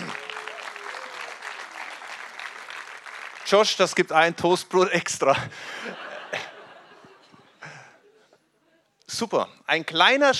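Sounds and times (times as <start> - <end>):
audience applause: 0.0 - 4.1
speech: 3.5 - 6.1, 9.2 - 10.3
laughter: 5.3 - 8.4.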